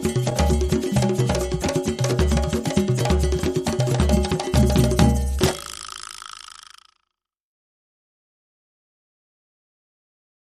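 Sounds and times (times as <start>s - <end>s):
drum music: 0.0s - 5.9s.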